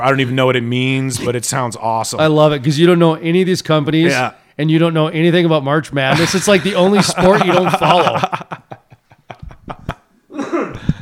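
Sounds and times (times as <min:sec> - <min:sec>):
speech: 0:00.0 - 0:08.6
laughter: 0:06.1 - 0:10.1
person coughing: 0:10.3 - 0:11.0.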